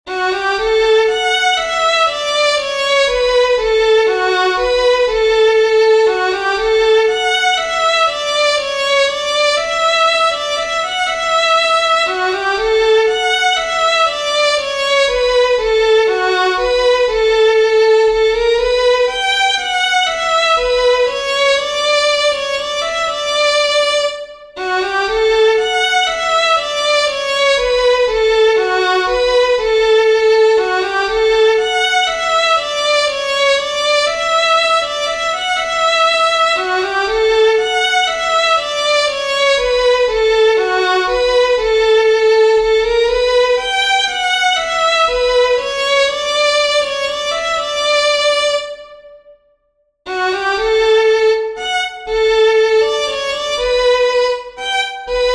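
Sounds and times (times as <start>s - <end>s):
fiddlers playing a waltz: 0.1s - 48.9s, 50.1s - 55.3s.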